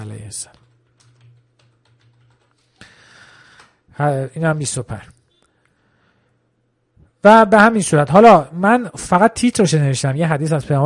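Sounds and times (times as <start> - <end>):
speech: 0.1 - 0.6, 4.0 - 5.2, 7.2 - 10.8
typing on a computer keyboard: 0.5 - 2.8.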